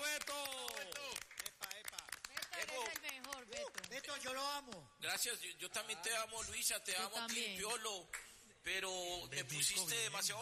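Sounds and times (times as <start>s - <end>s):
overlapping voices and cheers: 0.0s - 4.1s
audience applause to encourage a departing colleague: 0.0s - 4.9s
speech: 4.2s - 10.4s.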